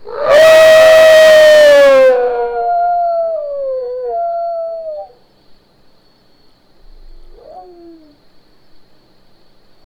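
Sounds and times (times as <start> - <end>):
wolf howling: 0.0 - 5.2, 7.3 - 8.2.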